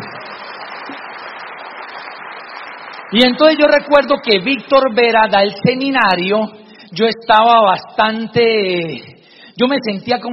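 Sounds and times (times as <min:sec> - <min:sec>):
applause: 0:00.0 - 0:04.8
speech: 0:03.1 - 0:10.3.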